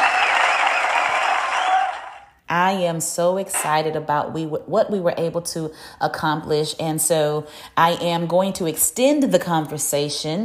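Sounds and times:
crowd applause: 0.0 - 2.3
speech: 2.5 - 10.4.

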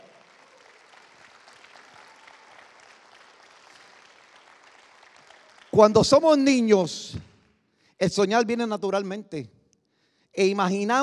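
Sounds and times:
audience applause: 0.0 - 6.0
speech: 5.8 - 7.2, 8.0 - 9.6, 10.4 - 11.0.

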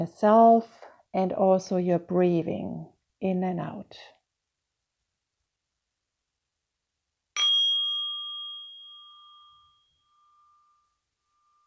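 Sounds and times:
speech: 0.0 - 4.2
meditation bell ringing: 7.4 - 11.6.

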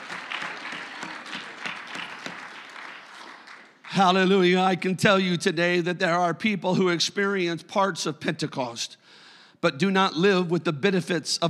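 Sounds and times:
audience clapping hands: 0.0 - 4.5
speech: 4.0 - 11.4.

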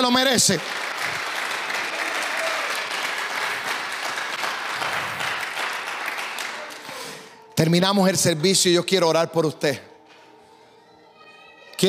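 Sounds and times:
speech: 0.0 - 1.3, 7.6 - 9.9
audience applause: 0.0 - 7.3.

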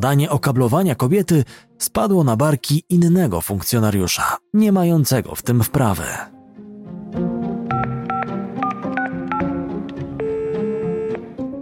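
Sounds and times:
speech: 0.0 - 6.4
telephone keypad beeps: 7.7 - 9.5, 10.2 - 11.2.

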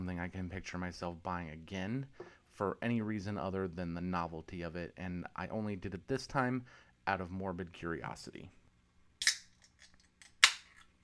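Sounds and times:
speech: 0.1 - 8.6
beer cans cracking open with fizzing hiss: 9.2 - 11.0.

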